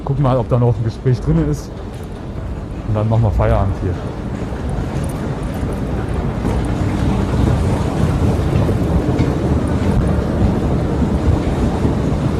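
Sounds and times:
subway platform ambience: 0:00.0 - 0:12.3
subway train rumble: 0:00.0 - 0:12.3
speech: 0:00.2 - 0:01.9, 0:02.9 - 0:04.4.

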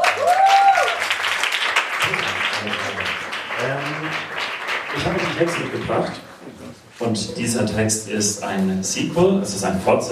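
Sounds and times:
audience applause: 0:00.0 - 0:06.4
speech: 0:05.4 - 0:06.3, 0:07.0 - 0:10.0.

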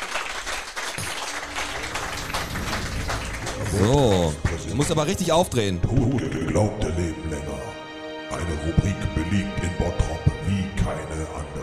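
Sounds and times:
short applause from a small group: 0:00.0 - 0:05.6
speech: 0:03.7 - 0:07.6, 0:08.4 - 0:11.6.

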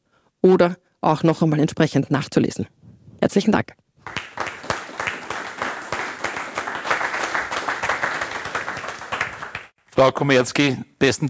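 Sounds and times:
speech: 0:00.4 - 0:04.2, 0:10.0 - 0:11.2
audience applause after a talk: 0:04.0 - 0:09.7.

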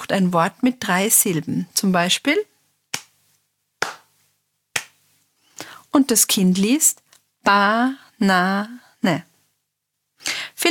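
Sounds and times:
speech: 0:00.1 - 0:02.5, 0:06.0 - 0:09.3, 0:10.2 - 0:10.7
hand claps marking word syllables in a children's reading game: 0:02.9 - 0:03.2, 0:03.8 - 0:05.0.

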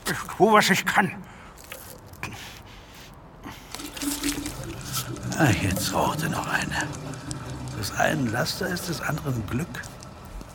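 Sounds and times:
speech: 0:00.1 - 0:01.4, 0:05.4 - 0:07.2, 0:07.8 - 0:09.9
soft drips and clicks: 0:01.3 - 0:02.2, 0:03.6 - 0:10.5
man urinating: 0:01.3 - 0:10.5.

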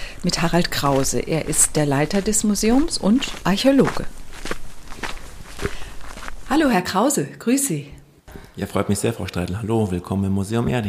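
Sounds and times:
footsteps walking: 0:00.0 - 0:06.8
speech: 0:00.2 - 0:04.6, 0:06.5 - 0:08.0, 0:08.6 - 0:10.8.

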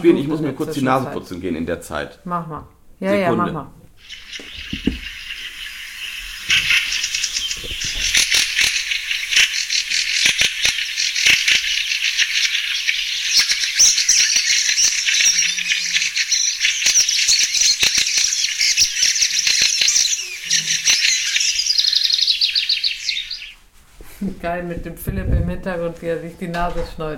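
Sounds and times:
speech: 0:00.0 - 0:05.0, 0:24.5 - 0:27.1
large bird colony chattering: 0:04.0 - 0:23.6.

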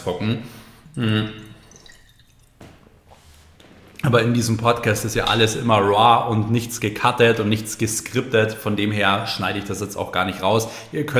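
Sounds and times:
speech: 0:00.0 - 0:01.5, 0:04.0 - 0:11.1
person taking a sip of water: 0:00.5 - 0:04.1.

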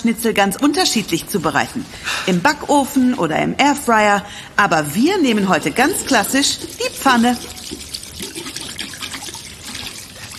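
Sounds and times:
speech: 0:00.0 - 0:07.8
washing hands under running sink tap: 0:05.0 - 0:10.3.

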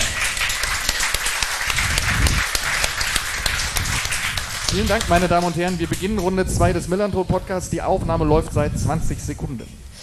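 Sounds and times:
live audience applause: 0:00.0 - 0:06.4
speech: 0:04.8 - 0:09.9.

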